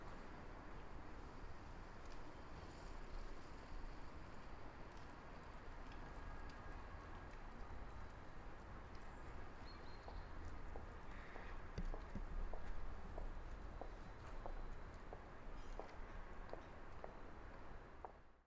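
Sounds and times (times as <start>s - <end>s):
street sounds: 0.0s - 18.4s.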